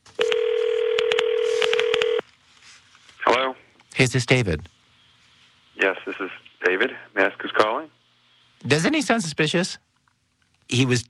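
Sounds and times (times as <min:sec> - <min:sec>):
telephone keypad dialing tones: 0:00.2 - 0:02.2
speech: 0:04.0 - 0:04.8, 0:05.8 - 0:08.0, 0:08.6 - 0:09.9, 0:10.7 - 0:11.0.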